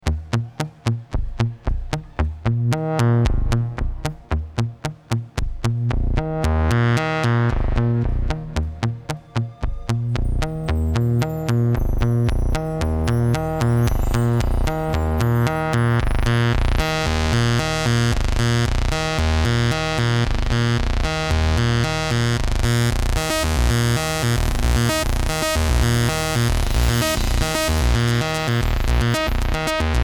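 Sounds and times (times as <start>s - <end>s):
modular synth improvisation: 0.0s - 30.0s.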